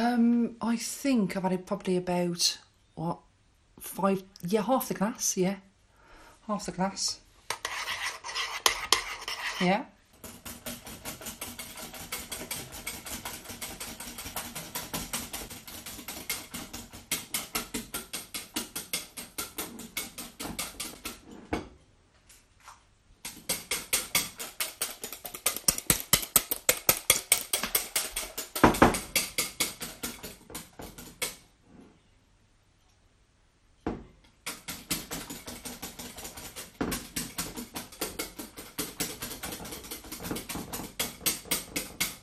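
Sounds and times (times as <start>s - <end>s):
speech: 0.1s - 5.7s, 6.5s - 7.2s, 9.6s - 10.0s
whisk beating a syllabub in a bowl: 7.5s - 21.2s, 23.2s - 31.4s, 34.4s - 42.2s.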